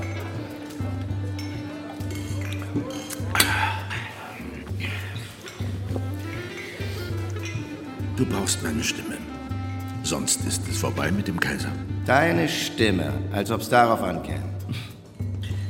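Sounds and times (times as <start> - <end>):
glasses clinking in a toast: 0.0 - 8.9
speech: 8.2 - 9.3, 10.1 - 14.9.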